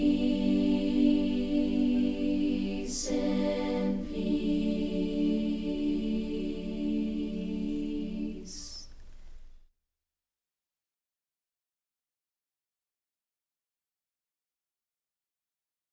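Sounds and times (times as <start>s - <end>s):
a cappella singing: 0.0s - 9.4s.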